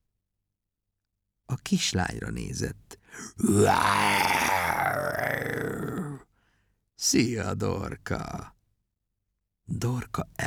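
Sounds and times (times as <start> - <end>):
speech: 1.7 - 5.9, 7.0 - 8.6, 9.7 - 10.4
lion yawning: 3.2 - 6.2.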